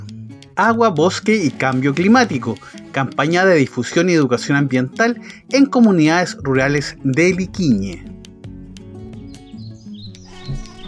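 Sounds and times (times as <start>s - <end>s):
speech: 0.6s - 8.2s
slender-billed parakeets (choroy) giving sharp high chirping calls: 9.4s - 10.8s.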